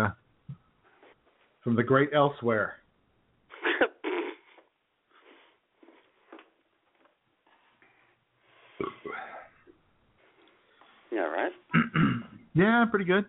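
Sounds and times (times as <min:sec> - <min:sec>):
speech: 0:01.6 - 0:02.8, 0:11.1 - 0:13.2
burp after drinking Pepsi: 0:03.8 - 0:04.6, 0:08.8 - 0:09.7, 0:11.7 - 0:12.5.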